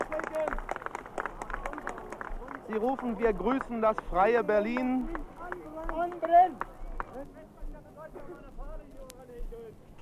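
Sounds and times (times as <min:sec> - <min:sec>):
demonstrators clapping: 0:00.0 - 0:07.2
speech: 0:02.7 - 0:07.4.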